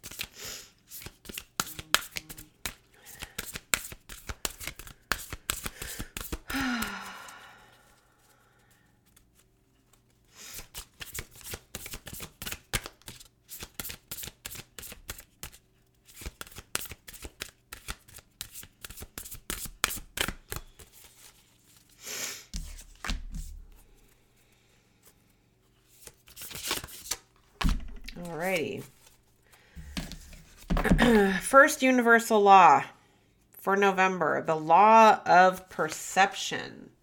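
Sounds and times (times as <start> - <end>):
deck of reading cards being shuffled: 0.0 - 7.0, 9.0 - 22.0, 22.6 - 24.1, 25.8 - 31.3
speech: 28.3 - 28.9, 31.1 - 32.9, 33.6 - 36.8.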